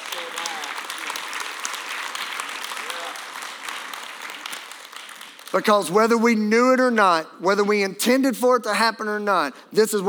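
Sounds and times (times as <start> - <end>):
crowd clapping: 0.0 - 6.9
speech: 5.5 - 10.0.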